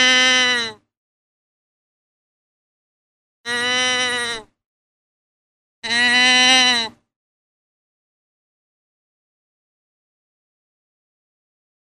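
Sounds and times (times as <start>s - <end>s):
deer bleating: 0.0s - 0.8s, 3.5s - 4.5s, 5.8s - 7.0s.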